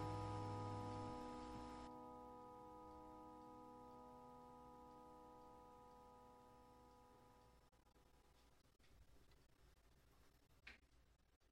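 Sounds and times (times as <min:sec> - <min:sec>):
instrumental music: 0:00.0 - 0:08.3.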